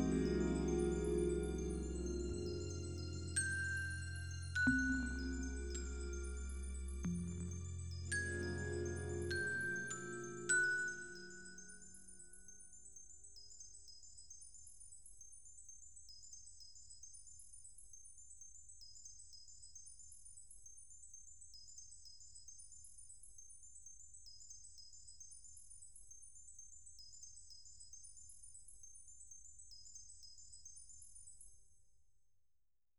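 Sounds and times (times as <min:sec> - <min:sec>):
glockenspiel: 0:00.0 - 0:13.9.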